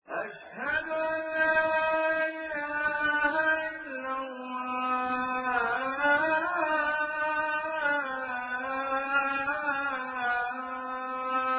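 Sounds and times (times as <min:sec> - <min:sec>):
Azan call to prayer: 0:00.1 - 0:11.5.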